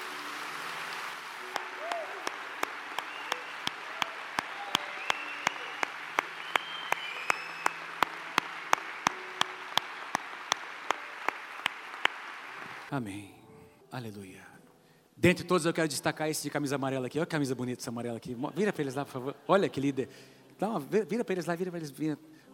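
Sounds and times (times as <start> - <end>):
audience applauding loudly: 0.0 - 12.9
speech: 12.9 - 14.5, 15.2 - 22.5.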